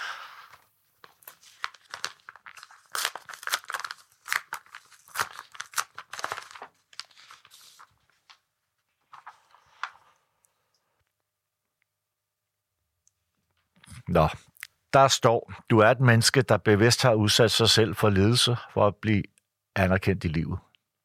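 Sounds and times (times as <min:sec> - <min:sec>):
paper rustling: 0:00.1 - 0:10.2
paper envelope being torn open: 0:00.3 - 0:08.0
speech: 0:14.1 - 0:20.6.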